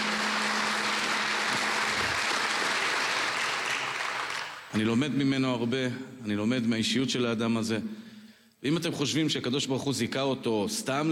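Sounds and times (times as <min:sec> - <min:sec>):
audience applause: 0:00.0 - 0:04.7
speech: 0:04.8 - 0:08.0, 0:08.6 - 0:11.0.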